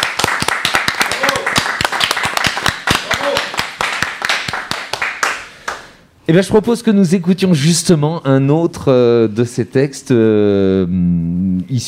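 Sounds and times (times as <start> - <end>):
audience clapping: 0.0 - 6.0
speech: 6.3 - 11.8.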